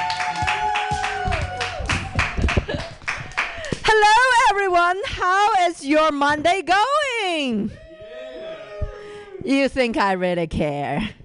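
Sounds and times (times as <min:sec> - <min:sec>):
audience applause welcoming a comedian at a comedy show: 0:00.0 - 0:03.8
speech: 0:04.9 - 0:07.8, 0:09.5 - 0:11.2.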